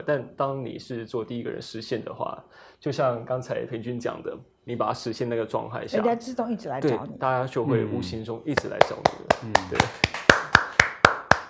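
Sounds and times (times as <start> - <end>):
speech: 0.0 - 10.2
clapping: 8.6 - 11.4.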